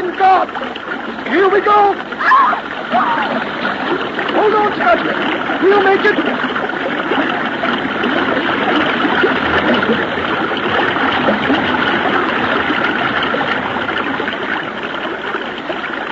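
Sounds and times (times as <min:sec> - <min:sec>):
rushing river current: 0:00.0 - 0:16.0
speech: 0:00.4 - 0:03.6, 0:04.4 - 0:06.4.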